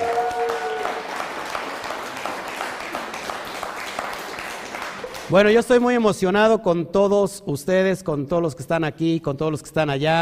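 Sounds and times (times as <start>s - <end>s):
audience applause: 0.0s - 5.6s
speech: 5.3s - 10.2s.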